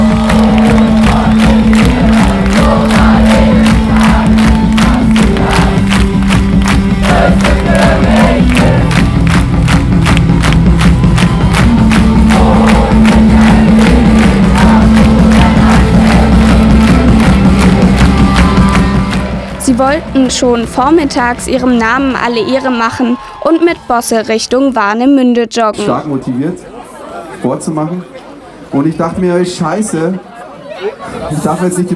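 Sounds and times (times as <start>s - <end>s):
concert crowd singing along: 0.0s - 9.1s, 11.7s - 24.4s
concert crowd clapping in rhythm: 0.0s - 24.9s
speech: 19.8s - 26.7s, 27.4s - 31.9s.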